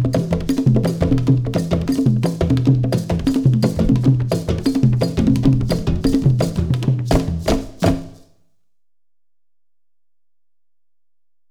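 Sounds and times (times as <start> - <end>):
West African rhythm played on a drumset: 0.0 - 8.3.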